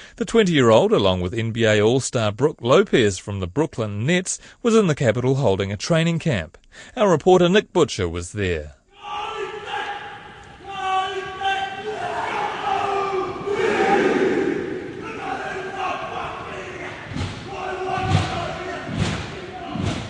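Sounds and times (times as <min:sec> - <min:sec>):
speech: 0:00.2 - 0:09.3
young fans chanting a haka at a sports centre in Kilburnie: 0:08.9 - 0:20.0
heavy thumping stomps of haka performers: 0:09.2 - 0:20.0.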